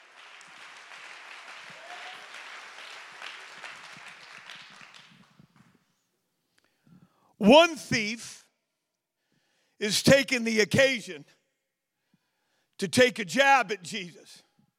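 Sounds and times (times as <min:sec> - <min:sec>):
audience clapping hands in praise: 0:00.0 - 0:05.9
speech: 0:07.4 - 0:08.4, 0:09.8 - 0:11.4, 0:12.8 - 0:14.4.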